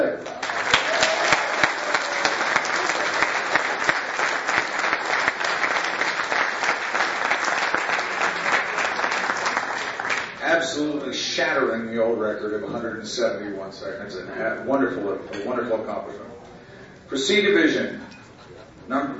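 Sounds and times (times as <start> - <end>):
audience applause: 0.2 - 10.4
speech: 11.4 - 16.3, 17.1 - 18.0.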